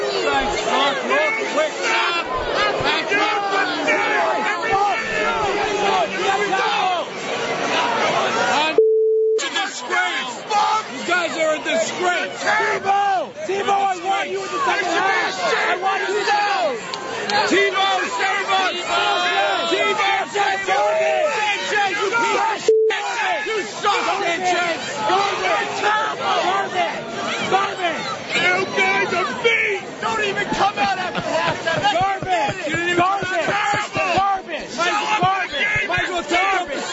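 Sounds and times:
football fans jeering and yelling: 0:00.0 - 0:08.8, 0:09.4 - 0:36.9
mid-pitched beep tone: 0:08.8 - 0:09.4, 0:22.7 - 0:23.0
laughter: 0:30.1 - 0:34.3.

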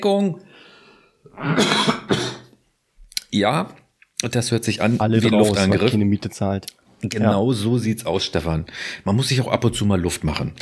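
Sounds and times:
speech: 0:00.0 - 0:00.5, 0:01.3 - 0:02.3, 0:03.3 - 0:10.5
person clearing throat: 0:01.3 - 0:02.6.

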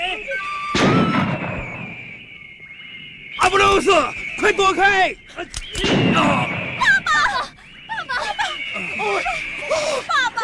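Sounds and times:
single sharp gunshot in a Chinese radio drama: 0:00.7 - 0:02.2, 0:05.7 - 0:06.8
speech: 0:03.8 - 0:06.6
laughter: 0:07.1 - 0:10.4.

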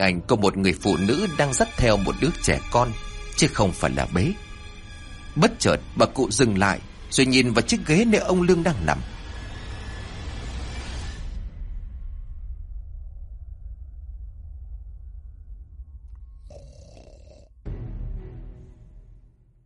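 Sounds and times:
speech: 0:00.0 - 0:04.4, 0:05.4 - 0:09.2
snoring: 0:16.4 - 0:17.6.

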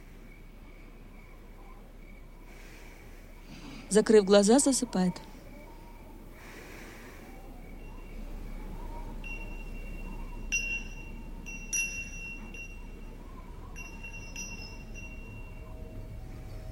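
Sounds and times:
speech: 0:03.9 - 0:05.3
hanging glass bottles and shells tinkling in wind: 0:09.2 - 0:16.0.

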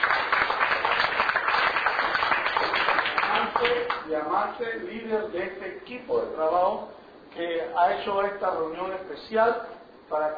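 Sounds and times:
strong applause at a business meeting: 0:00.0 - 0:03.9
speech: 0:04.1 - 0:10.3.

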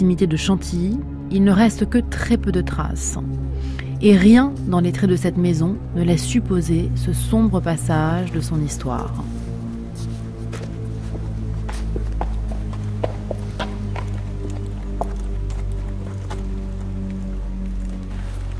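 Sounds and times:
speech: 0:00.0 - 0:09.4
horse hooves clip-clopping past: 0:10.0 - 0:18.5.

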